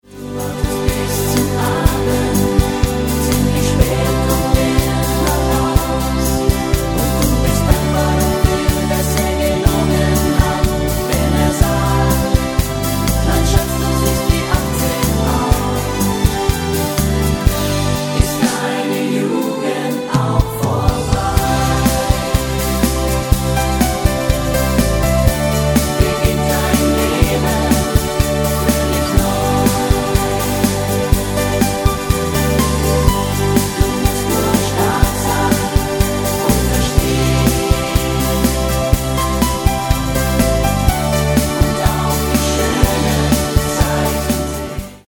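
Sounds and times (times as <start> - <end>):
choir: 0.0 - 45.0.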